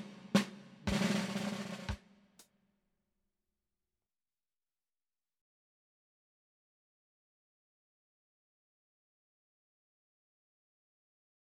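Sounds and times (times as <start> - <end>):
drum roll: 0.0 - 2.0.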